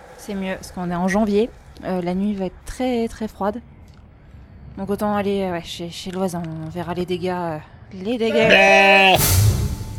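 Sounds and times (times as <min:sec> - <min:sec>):
speech: 0:00.2 - 0:03.7, 0:04.8 - 0:09.5
goat bleating on a cold January night: 0:08.3 - 0:09.2.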